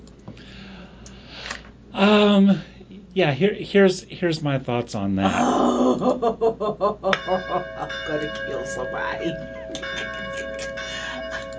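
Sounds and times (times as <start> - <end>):
speech: 2.0 - 10.1
laughter: 5.3 - 8.2
church bells ringing from an app: 7.2 - 11.5.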